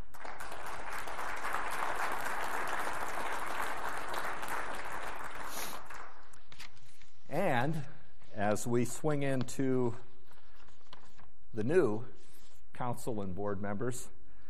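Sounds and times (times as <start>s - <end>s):
audience applause: 0.0s - 6.2s
speech: 7.6s - 10.1s, 11.6s - 12.2s, 12.8s - 14.2s.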